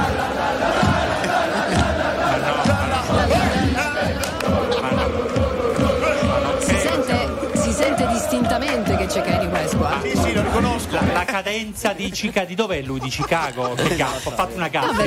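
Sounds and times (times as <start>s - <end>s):
large stadium crowd singing a football chant: 0.0s - 11.3s
laughter: 0.0s - 15.0s
speech: 11.4s - 15.0s.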